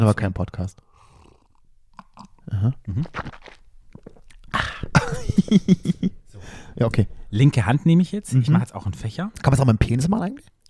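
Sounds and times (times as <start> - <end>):
speech: 0.0 - 0.9, 2.5 - 3.6, 4.6 - 10.5
person sipping tea: 0.8 - 5.0.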